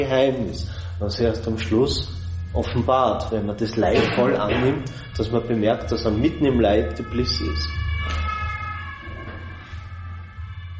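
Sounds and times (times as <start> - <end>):
speech: 0.0 - 8.2
ambulance siren wailing: 6.2 - 10.7.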